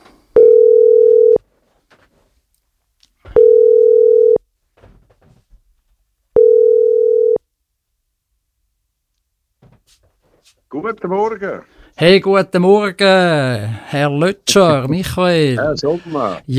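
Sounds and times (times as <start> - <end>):
ringback tones of an outgoing phone call: 0.4 - 1.4, 3.3 - 4.4, 6.4 - 7.4
speech: 10.7 - 16.5.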